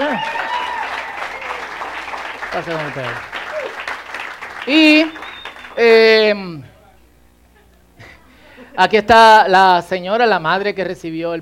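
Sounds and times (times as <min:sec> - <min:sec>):
audience applause: 0:00.0 - 0:05.8
speech: 0:02.5 - 0:03.3, 0:04.7 - 0:05.2, 0:05.8 - 0:06.7, 0:08.8 - 0:11.3.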